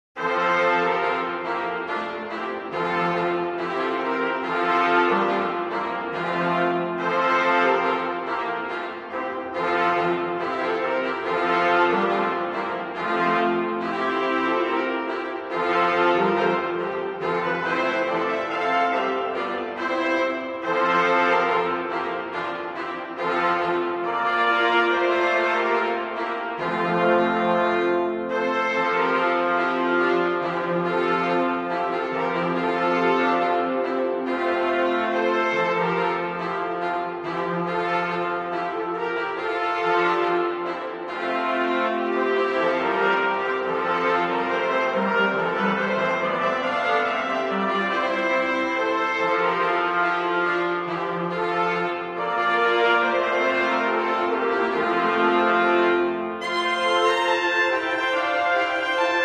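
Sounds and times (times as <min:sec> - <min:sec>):
brass band playing a Christmas carol: 0:00.2 - 0:59.2.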